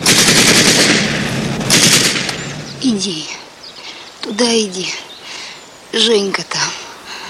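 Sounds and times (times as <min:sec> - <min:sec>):
rapid automatic gunfire aimed at soldiers crossing a ford: 0:00.0 - 0:02.4
speech: 0:03.0 - 0:03.4, 0:04.2 - 0:05.1, 0:06.0 - 0:06.6.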